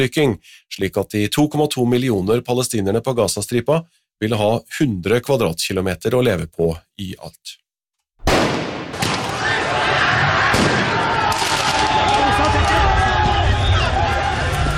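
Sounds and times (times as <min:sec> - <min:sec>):
speech: 0:00.0 - 0:07.6
bang-like blasts during football riots: 0:08.2 - 0:12.7
crowd roaring during football riots in France: 0:08.9 - 0:14.7.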